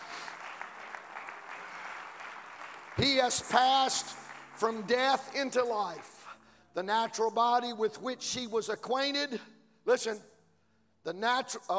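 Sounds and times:
audience clapping hands: 0:00.0 - 0:06.4
speech: 0:03.0 - 0:06.1, 0:06.8 - 0:10.3, 0:11.0 - 0:11.7.

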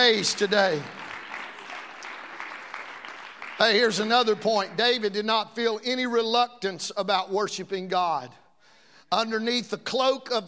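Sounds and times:
speech: 0:00.0 - 0:01.1, 0:03.6 - 0:08.4, 0:09.1 - 0:10.4
audience clapping hands: 0:00.0 - 0:05.2.

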